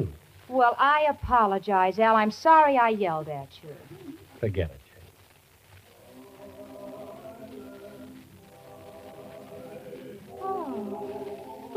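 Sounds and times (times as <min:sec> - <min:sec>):
speech: 0:00.0 - 0:04.8
group of carolers singing a slow Christmas tune: 0:05.9 - 0:11.7.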